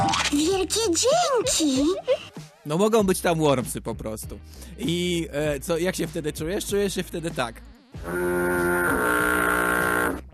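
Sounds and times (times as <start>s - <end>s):
speech: 0.6s - 9.4s
person imitating a cow mooing: 8.0s - 10.2s.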